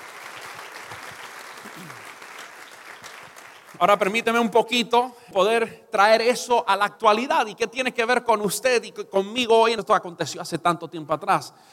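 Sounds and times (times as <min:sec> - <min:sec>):
audience clapping: 0:00.0 - 0:04.5
speech: 0:03.8 - 0:11.7.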